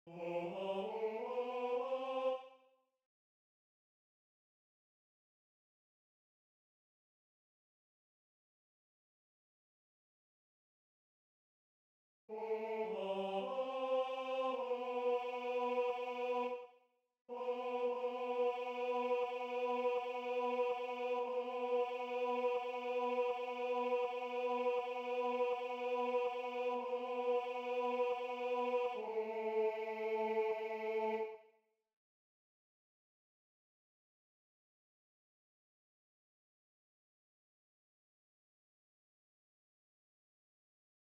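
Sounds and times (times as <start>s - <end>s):
tenor singing: 0.1s - 2.4s, 12.4s - 16.6s, 17.3s - 31.3s.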